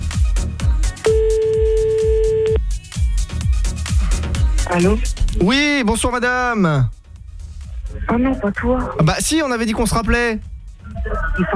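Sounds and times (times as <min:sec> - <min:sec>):
loud thumping rhythmic music bed: 0:00.0 - 0:11.5
telephone ringback tone of an outgoing call: 0:01.1 - 0:02.6
speech: 0:04.8 - 0:07.0, 0:08.1 - 0:11.5.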